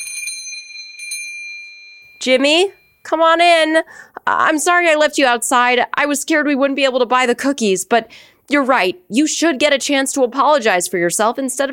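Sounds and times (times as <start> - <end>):
door bell jingling: 0.0 - 3.1
speech: 2.2 - 11.7.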